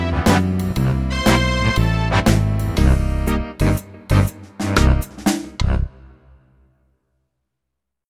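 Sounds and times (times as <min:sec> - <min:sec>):
big band playing: 0:00.0 - 0:06.3.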